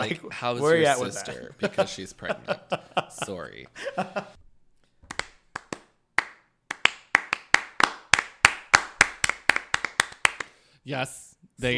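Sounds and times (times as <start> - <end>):
speech: 0.0 - 4.4, 10.9 - 11.7
slow clap building up: 5.0 - 10.6.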